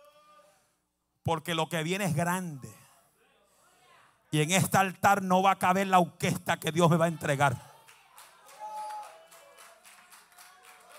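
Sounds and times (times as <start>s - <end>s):
speech: 1.2s - 2.8s, 4.3s - 7.7s
audience applause: 7.4s - 10.9s.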